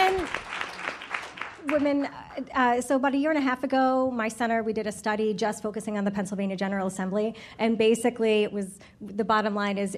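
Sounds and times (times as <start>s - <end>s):
audience applause: 0.0s - 1.9s
speech: 1.7s - 9.9s.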